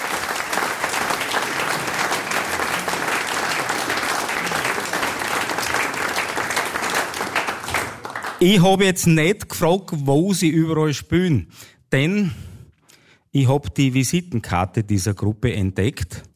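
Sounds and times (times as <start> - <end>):
audience applause: 0.0 - 8.5
speech: 8.4 - 12.4, 13.3 - 16.3.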